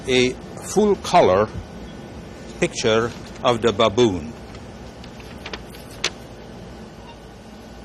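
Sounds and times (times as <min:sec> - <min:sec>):
speech: 0:00.0 - 0:01.7, 0:02.6 - 0:04.4
color printer printing a picture with a steady mechanical whir: 0:00.0 - 0:07.8
printer clicking: 0:04.3 - 0:06.4.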